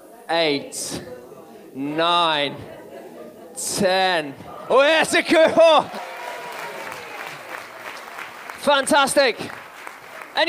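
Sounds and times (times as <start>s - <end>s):
speech: 0.3s - 1.2s, 1.8s - 2.8s, 3.6s - 6.0s, 8.6s - 9.6s
laughter: 1.9s - 7.9s
audience clapping for a participant after a chin-up attempt: 5.3s - 10.4s.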